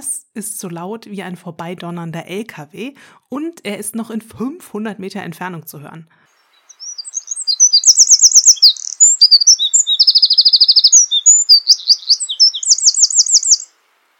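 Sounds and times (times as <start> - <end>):
speech: 0.4 - 6.3
wren singing: 6.4 - 13.7.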